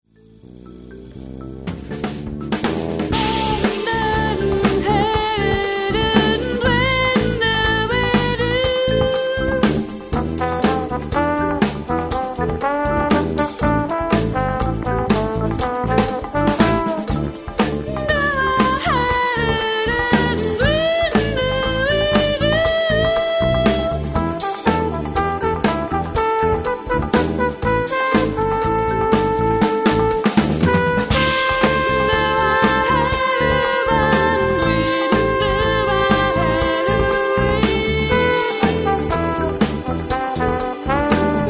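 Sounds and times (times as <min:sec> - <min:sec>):
minimal bolero played live: 0:00.2 - 0:41.4.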